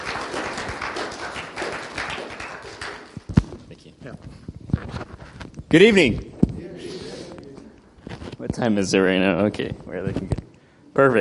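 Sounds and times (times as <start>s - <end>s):
audience applause: 0.0s - 3.2s
speech: 5.7s - 6.3s, 8.6s - 10.4s, 11.0s - 11.1s.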